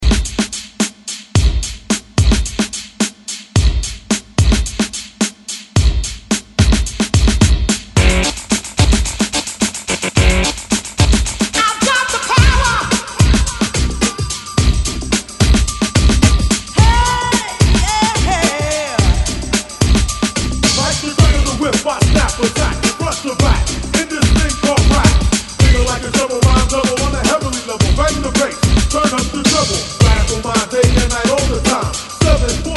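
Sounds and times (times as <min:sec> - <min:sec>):
90s drum beat at 109 BPM: 0:00.0 - 0:32.7.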